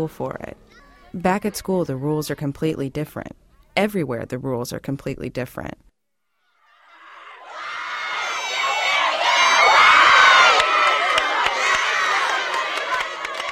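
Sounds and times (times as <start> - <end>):
speech: 0.0 - 5.9
two camp teams cheering and shouting at a relay race: 6.7 - 13.5
sharp claps or thumps: 10.4 - 13.5.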